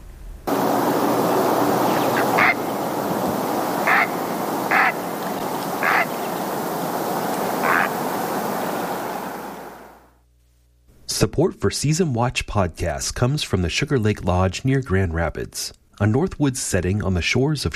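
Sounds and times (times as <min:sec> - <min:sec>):
steady rushing background: 0:00.5 - 0:10.0
Great Blue Heron croaking squawks: 0:01.2 - 0:08.7
speech: 0:11.2 - 0:17.7.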